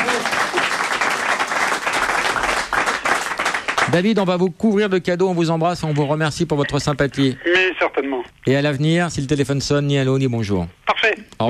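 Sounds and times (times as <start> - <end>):
applause: 0.0 - 4.3
speech: 3.9 - 11.4.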